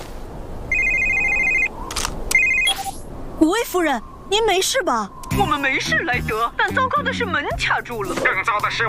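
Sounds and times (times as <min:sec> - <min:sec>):
phone call ringing: 0:00.7 - 0:01.7, 0:02.3 - 0:03.0
speech: 0:03.4 - 0:08.8.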